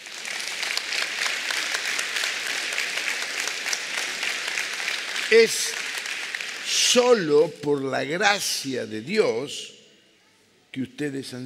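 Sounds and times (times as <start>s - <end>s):
audience applause: 0.0s - 7.4s
speech: 5.3s - 5.8s, 6.7s - 9.8s, 10.8s - 11.4s.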